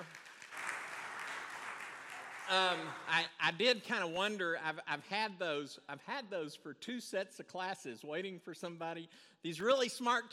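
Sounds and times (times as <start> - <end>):
audience applause: 0.0 - 3.3
speech: 2.5 - 10.3.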